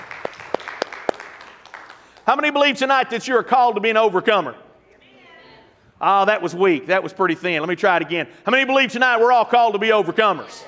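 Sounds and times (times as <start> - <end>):
audience hand clapping: 0.0 - 2.6
speech: 2.3 - 4.6, 6.0 - 10.6.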